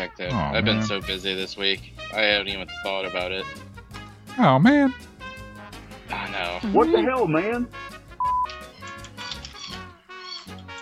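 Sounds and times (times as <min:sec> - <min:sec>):
speech: 0:00.0 - 0:03.7, 0:04.4 - 0:05.1, 0:06.2 - 0:07.8
short steady beep: 0:08.2 - 0:08.5
dog's squeaky toy squeaking: 0:08.7 - 0:10.7.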